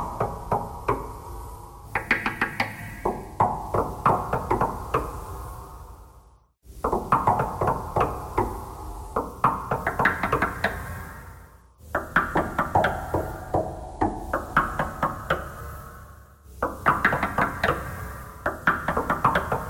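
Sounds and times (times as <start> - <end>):
knocking thread noise: 1.9 - 5.3, 6.8 - 10.8, 11.8 - 15.5, 16.6 - 19.6.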